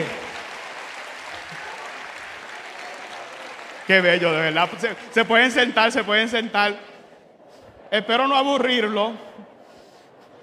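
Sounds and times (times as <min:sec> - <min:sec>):
audience applause: 0:00.0 - 0:06.0
speech: 0:03.9 - 0:06.9, 0:07.9 - 0:09.5.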